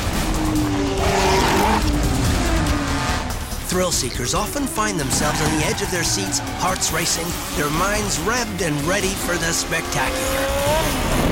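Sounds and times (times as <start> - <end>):
tires skidding: 0.0 - 3.6, 4.3 - 11.2
stunt car revving: 0.0 - 11.2
speech: 3.8 - 11.2.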